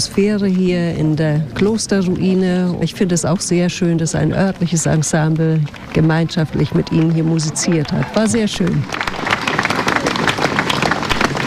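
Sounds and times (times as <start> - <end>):
speech: 0.0 - 9.4
crowd applauding: 4.6 - 11.4.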